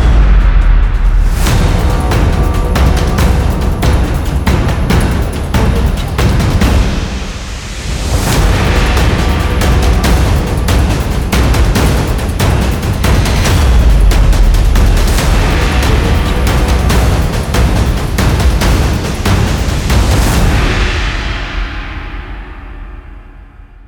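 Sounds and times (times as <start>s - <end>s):
action trailer drum kit percussion: 0.0s - 23.6s.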